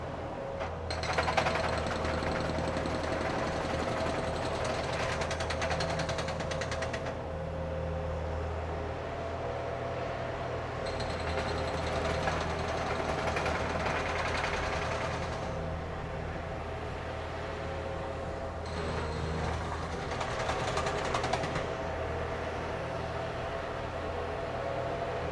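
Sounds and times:
loader machine: 0.1 - 9.6, 10.2 - 25.3.

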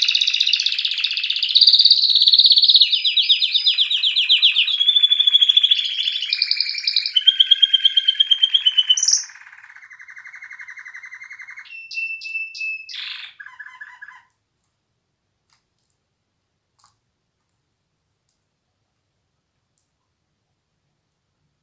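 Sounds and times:
canary singing trills: 0.0 - 14.3.

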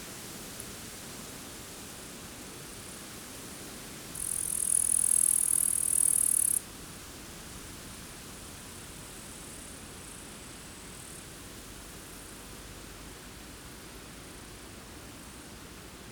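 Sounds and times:
wind near a forest: 0.0 - 16.0
grasshoppers chirping near a forest: 4.2 - 6.6.

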